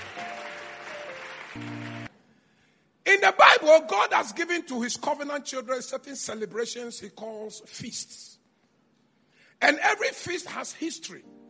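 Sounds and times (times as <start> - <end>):
audience clapping hands: 0.0 - 2.1
speech: 1.6 - 2.0, 3.4 - 8.4, 9.6 - 11.4.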